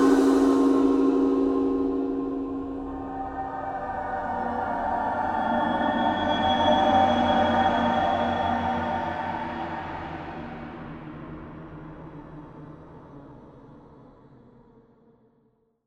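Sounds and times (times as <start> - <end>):
space atmosphere ambience: 0.0 - 11.0.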